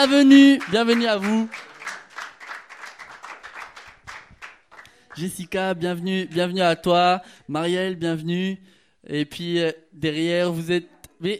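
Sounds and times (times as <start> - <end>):
speech: 0.0 - 1.7, 5.2 - 11.3
audience applauding: 0.0 - 5.4.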